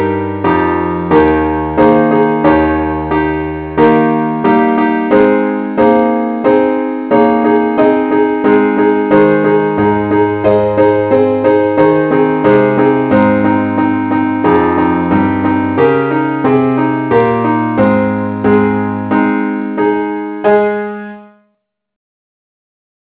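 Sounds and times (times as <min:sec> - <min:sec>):
keyboard playing in A flat: 0:00.0 - 0:21.3.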